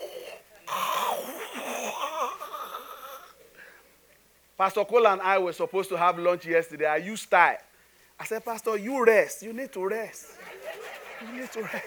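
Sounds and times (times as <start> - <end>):
voice imitating snoring: 0.0 - 3.4
speech: 4.6 - 10.4, 11.2 - 11.8
laughter: 10.2 - 11.8.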